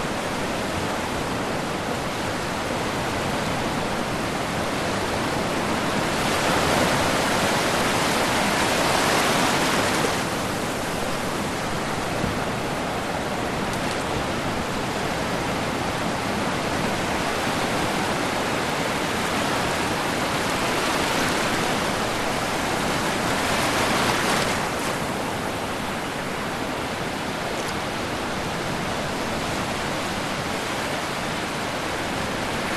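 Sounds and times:
distant subtropical ocean surf: 0.0 - 32.7
smaller waves lapping onto a sandy beach: 0.0 - 32.7.

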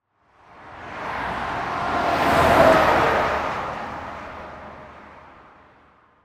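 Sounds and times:
car passing by whoosh: 0.7 - 5.4.

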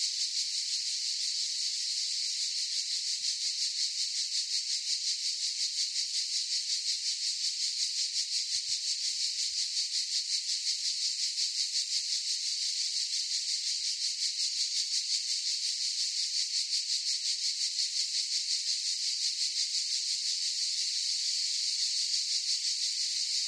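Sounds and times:
cicadas buzzing in a forest chorus: 0.0 - 23.4.

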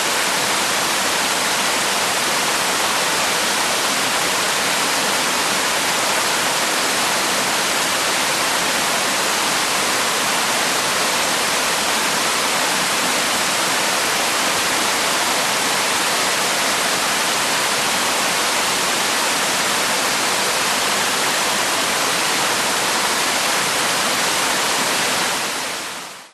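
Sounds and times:
80m high waterfall into a base pool: 0.0 - 26.3.

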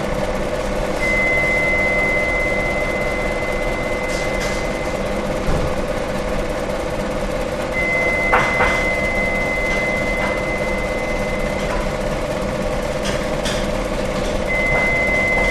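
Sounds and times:
bakers working in background: 0.0 - 15.4
bakery stirring machine running in Germany: 0.0 - 15.4
beeping in a bakery: 1.0 - 5.4, 7.7 - 12.4, 14.4 - 15.4.

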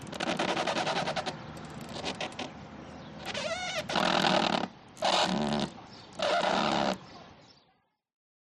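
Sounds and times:
boat rubbing and squeaking against jetty: 0.0 - 2.6, 3.2 - 7.1
distant traffic: 0.0 - 7.9.

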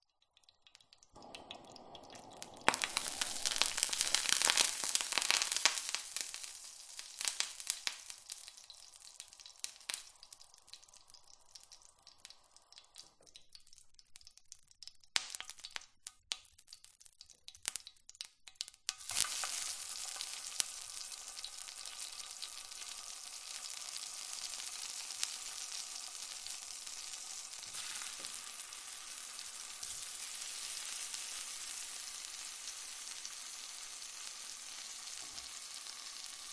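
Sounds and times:
oil and water sizzling in household oven pan with big spits: 0.4 - 36.5.

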